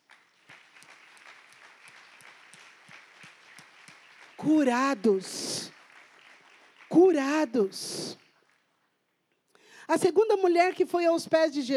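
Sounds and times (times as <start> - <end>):
audience clapping: 0.0 - 9.2
speech: 4.4 - 5.5, 7.0 - 8.2, 9.9 - 11.7.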